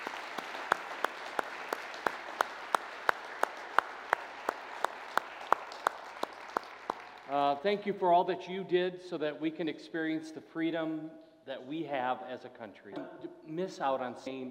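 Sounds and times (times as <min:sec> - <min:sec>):
audience applause: 0:00.0 - 0:07.6
speech: 0:07.3 - 0:14.5.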